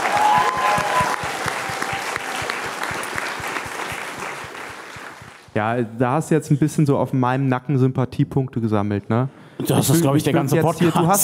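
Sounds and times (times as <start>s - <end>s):
audience applause: 0.0s - 5.5s
speech: 5.6s - 11.2s.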